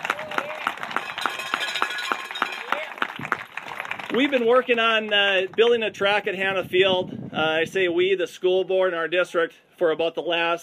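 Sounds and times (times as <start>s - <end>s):
audience applause: 0.0s - 5.2s
speech: 4.2s - 10.6s.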